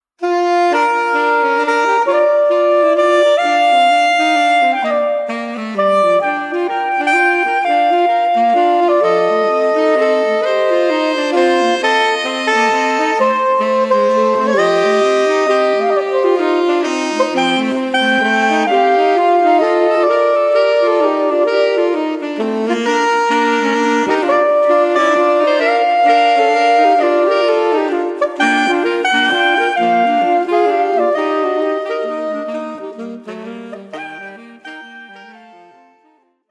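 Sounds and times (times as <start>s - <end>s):
musical trio: 0.1s - 36.2s.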